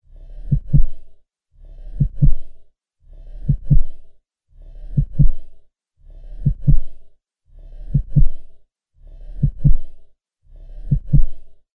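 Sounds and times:
heartbeat: 0.4s - 1.1s, 2.0s - 2.6s, 3.4s - 4.1s, 4.8s - 5.6s, 6.4s - 7.1s, 7.9s - 8.6s, 9.4s - 10.0s, 10.8s - 11.6s.

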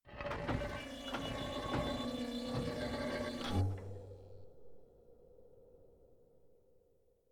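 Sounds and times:
spaceship door: 0.1s - 4.3s.

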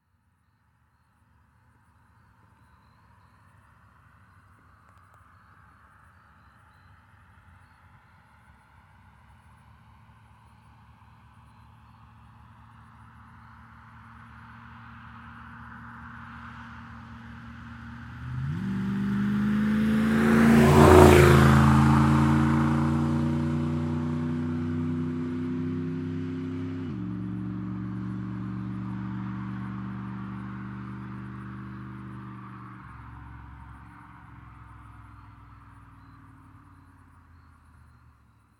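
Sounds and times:
1982 Z28 car accelerating fast: 16.7s - 38.0s.

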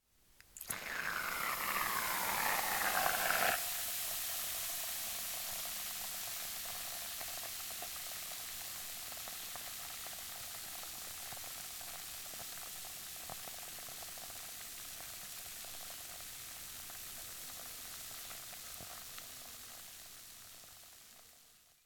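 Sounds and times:
foam: 0.6s - 5.1s.

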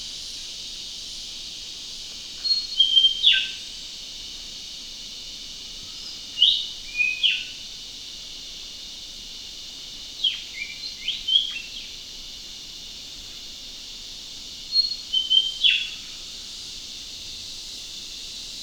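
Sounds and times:
shrill insect-like hiss: 0.0s - 18.6s
yellow-throated leafbird calling with clipped high whistles: 2.4s - 3.6s, 6.4s - 7.6s, 10.2s - 11.9s, 14.7s - 16.1s.

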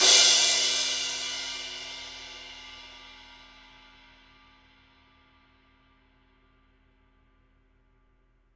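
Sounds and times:
Z Custom Projection 19 crash cymbal: 0.0s - 4.9s.

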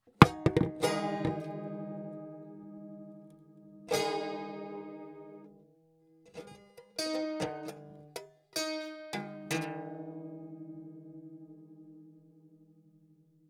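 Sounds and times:
broken mandolin falling: 0.1s - 5.5s, 6.3s - 11.0s.

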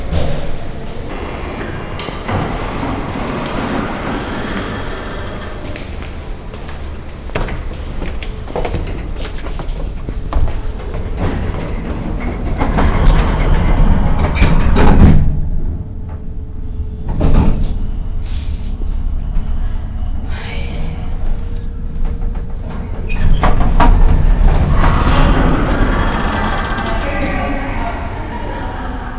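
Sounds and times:
elevator: 0.0s - 29.1s.

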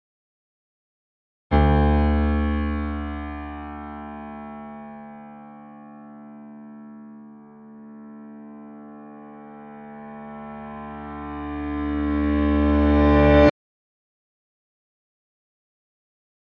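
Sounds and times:
piano swell in D: 1.5s - 13.5s.

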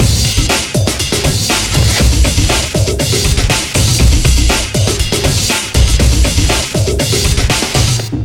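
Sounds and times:
heavy drums: 0.0s - 8.2s.

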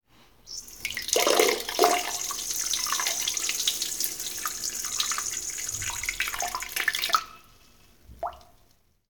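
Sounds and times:
urinating into a toilet: 0.5s - 9.0s.

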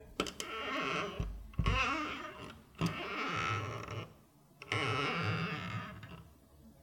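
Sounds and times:
wooden door creaking: 0.2s - 6.3s.

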